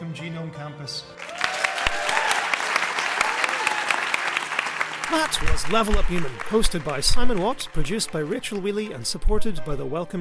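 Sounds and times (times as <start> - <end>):
speech: 0.2 - 1.3, 5.1 - 10.1
audience applause: 1.2 - 9.3.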